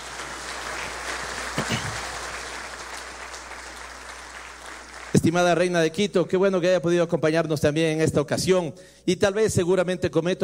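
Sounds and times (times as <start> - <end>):
audience applause: 0.0 - 5.6
speech: 5.2 - 10.4.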